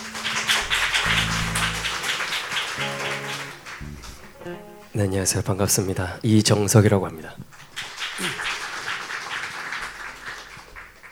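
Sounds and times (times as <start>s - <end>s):
audience applause: 0.0s - 4.3s, 7.7s - 11.0s
speech: 5.0s - 7.5s.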